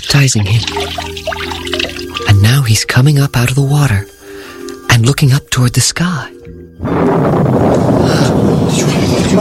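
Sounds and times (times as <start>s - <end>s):
speech: 0.2s - 1.5s, 2.5s - 4.1s, 5.0s - 7.4s, 8.7s - 9.3s
thunder-like rumble of voice from heaven: 6.8s - 9.3s.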